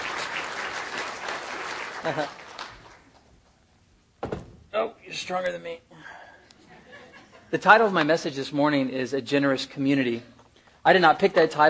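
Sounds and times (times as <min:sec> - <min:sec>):
crowd hand clapping applause: 0:00.0 - 0:03.3
laughter: 0:01.9 - 0:02.7, 0:06.6 - 0:07.6
speech: 0:02.0 - 0:02.4, 0:04.8 - 0:05.9, 0:07.5 - 0:11.6.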